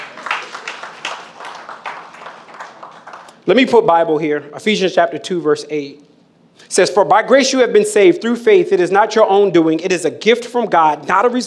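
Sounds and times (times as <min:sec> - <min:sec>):
audience clapping: 0:00.0 - 0:03.4
speech: 0:03.4 - 0:06.1, 0:06.7 - 0:11.4.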